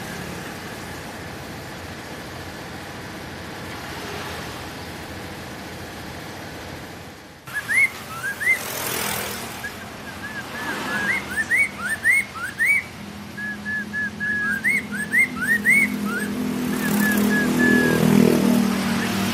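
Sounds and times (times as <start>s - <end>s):
bird whistling and chirping: 7.5s - 19.3s.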